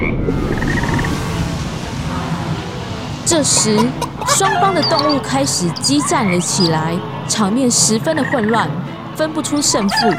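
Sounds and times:
chorus of frogs croaking: 0.5s - 10.1s
high trilling call: 3.3s - 6.9s
speech: 3.3s - 10.1s.

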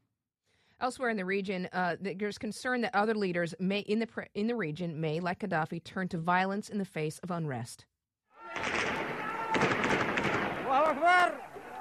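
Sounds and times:
speech: 0.8s - 7.9s, 10.7s - 11.5s
protesters shouting at a university: 8.4s - 11.7s
security forces in Yemen firing on a protest: 8.5s - 11.7s.

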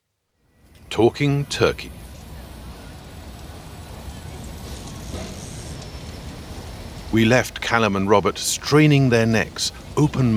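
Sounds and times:
bus pulling away: 0.7s - 10.3s
speech: 0.9s - 2.0s, 7.1s - 10.3s
bus doors hissing shut: 2.4s - 10.3s.

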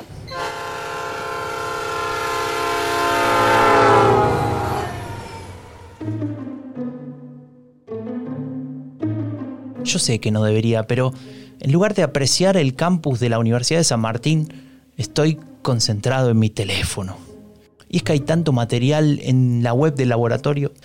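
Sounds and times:
train stopping at Migueletes station in San Martín: 1.5s - 6.4s
speech: 9.9s - 17.3s, 17.9s - 20.8s.

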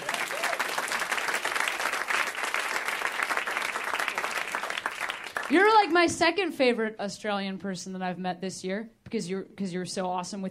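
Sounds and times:
audience applause: 0.0s - 5.6s
speech: 5.5s - 10.5s.

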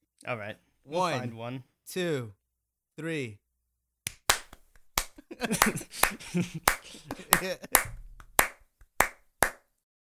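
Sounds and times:
speech: 0.2s - 2.4s, 3.0s - 3.4s, 5.3s - 8.0s
hand claps in an attempted synchronized clap: 4.1s - 9.7s
laughter: 5.0s - 8.0s.

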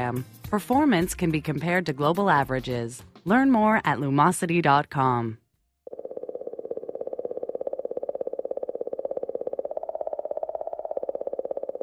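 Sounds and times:
speech: 0.0s - 5.4s
mysterious clicking recorded from Comet 67P: 5.9s - 11.8s.

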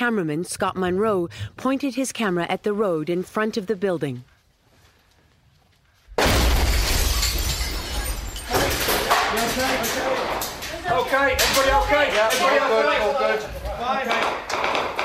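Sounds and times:
speech: 0.0s - 4.3s, 9.5s - 14.7s
ISIS suicide car bomb explosion: 6.2s - 8.1s
glass shattering from car bomb explosion: 6.2s - 10.8s.

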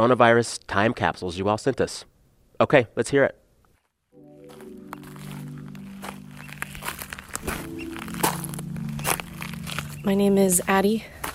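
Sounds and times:
speech: 0.0s - 3.4s, 10.0s - 11.2s
footsteps crunching outdoors on Portland Island near Juneau Alaska: 3.7s - 11.3s
steady low drone: 4.6s - 10.7s.

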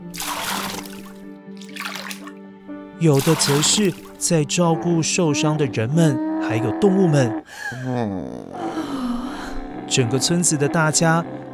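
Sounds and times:
water being splashed out: 0.0s - 2.4s, 3.0s - 4.4s
speech: 3.0s - 8.9s, 9.9s - 11.5s.

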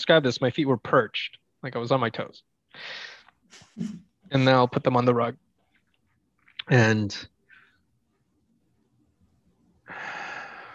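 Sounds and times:
speech: 0.0s - 5.4s, 6.7s - 7.3s
breathing in and out through the nose: 2.8s - 3.7s, 9.9s - 10.7s.

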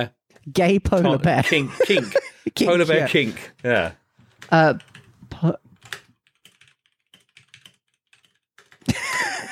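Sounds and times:
speech: 0.0s - 5.6s
laughter: 1.4s - 2.6s, 8.9s - 9.4s
frantic typing on a computer keyboard: 3.6s - 5.1s, 5.8s - 9.0s.

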